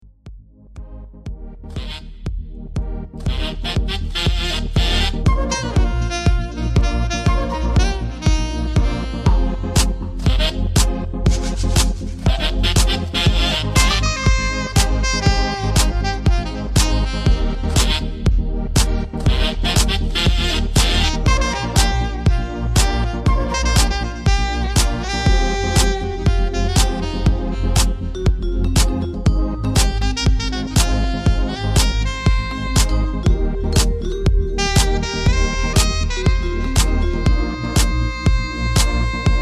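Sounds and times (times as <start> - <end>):
saxophone: 1.7 - 2.2, 2.8 - 39.4.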